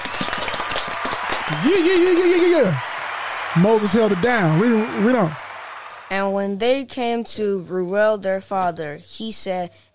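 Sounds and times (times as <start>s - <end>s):
group clapping: 0.0s - 6.4s
speech: 1.5s - 2.9s, 3.6s - 5.4s, 6.1s - 9.9s.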